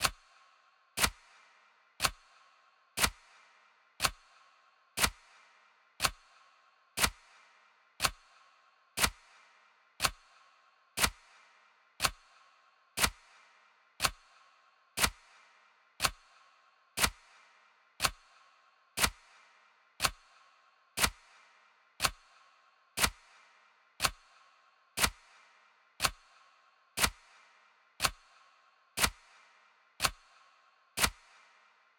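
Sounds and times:
clock: 0:00.0 - 0:00.2, 0:01.0 - 0:01.3, 0:02.0 - 0:02.3, 0:03.0 - 0:03.3, 0:04.0 - 0:04.3, 0:05.0 - 0:05.3, 0:06.0 - 0:06.3, 0:07.0 - 0:07.3, 0:08.0 - 0:08.3, 0:09.0 - 0:09.3, 0:10.0 - 0:10.3, 0:11.0 - 0:11.3, 0:12.0 - 0:12.3, 0:13.0 - 0:13.4, 0:14.0 - 0:14.3, 0:15.0 - 0:15.4, 0:16.0 - 0:16.4, 0:17.0 - 0:17.4, 0:18.0 - 0:18.4, 0:19.0 - 0:19.4, 0:20.0 - 0:20.4, 0:21.0 - 0:21.4, 0:22.0 - 0:22.3, 0:23.0 - 0:23.4, 0:24.0 - 0:24.4, 0:25.0 - 0:25.4, 0:26.0 - 0:26.4, 0:27.0 - 0:27.4, 0:28.0 - 0:28.4, 0:29.0 - 0:30.4, 0:31.0 - 0:31.6.

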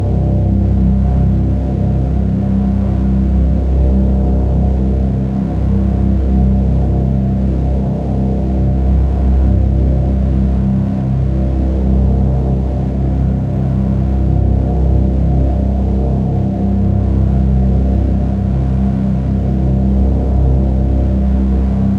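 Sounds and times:
dark intensive drone of electric waves: 0:00.0 - 0:21.9.

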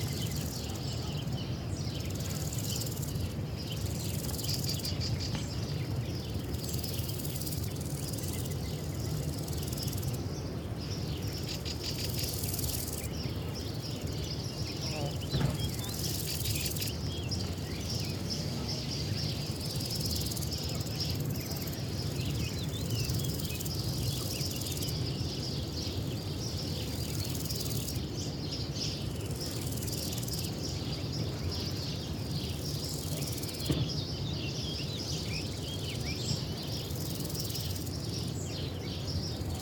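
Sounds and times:
birds in Spain: 0:00.0 - 0:39.6
cicadas in Spain: 0:00.0 - 0:39.6
crickets in Spain: 0:00.0 - 0:39.6.

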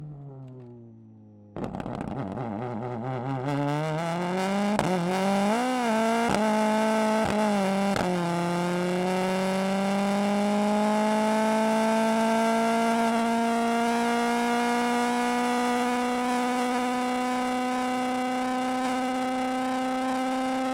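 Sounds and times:
Ford Puma Hybrid Rally1 2022 WRC car exhaust onboard driving and launch control: 0:00.0 - 0:20.7.

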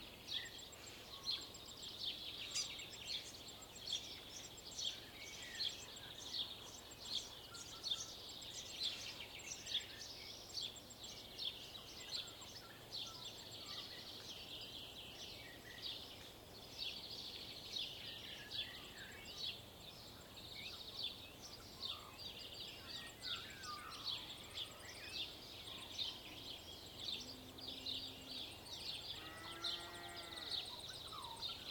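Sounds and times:
dawn chorus birds on rural farmland in Waikato New Zealand: 0:00.0 - 0:31.6
cow on rural farmland in Waikato New Zealand: 0:29.2 - 0:30.6.

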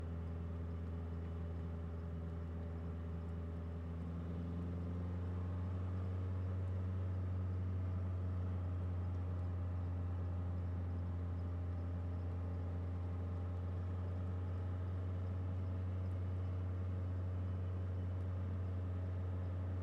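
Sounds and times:
Citroen C5 exhaust driving at steady RPMs: 0:00.2 - 0:19.8.

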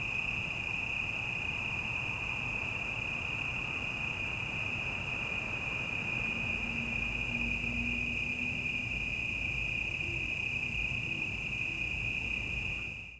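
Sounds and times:
cicadas on a city night: 0:00.0 - 0:13.1
distant city traffic at night: 0:05.6 - 0:12.9.

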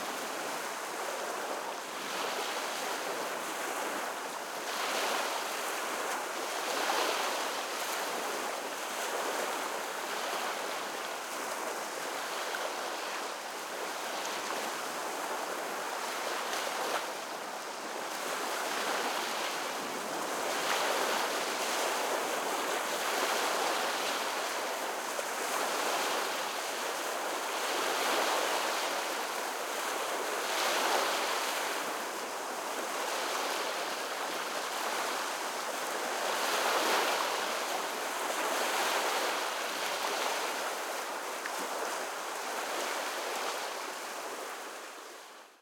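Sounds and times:
Lake Huron water ambience at Mackinaw in the evening: 0:00.0 - 0:45.4.

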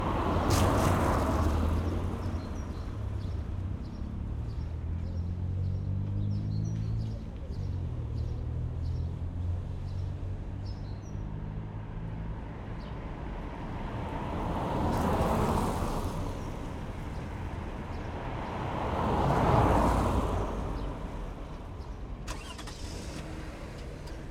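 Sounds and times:
car passing on a narrow street: 0:00.0 - 0:02.9, 0:13.4 - 0:24.2
daytime summer street traffic in Moscow: 0:00.0 - 0:24.2.

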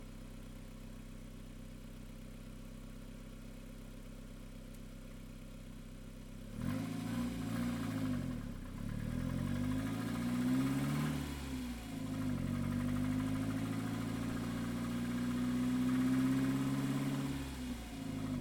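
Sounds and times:
Toyota endurance race car with Audi engine starting, driving, stopping and reversing: 0:06.6 - 0:18.4.

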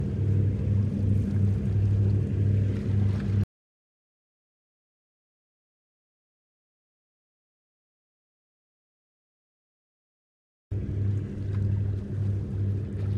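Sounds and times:
Wellcraft Scarab 34 boat approaching and moving away: 0:00.0 - 0:03.4, 0:10.7 - 0:13.1.

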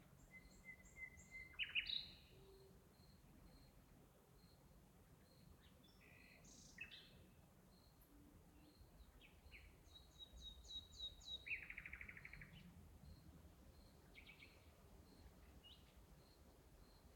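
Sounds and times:
night birds in the countryside: 0:00.0 - 0:17.1
cricket: 0:01.3 - 0:06.4, 0:07.7 - 0:08.0, 0:08.7 - 0:15.3.

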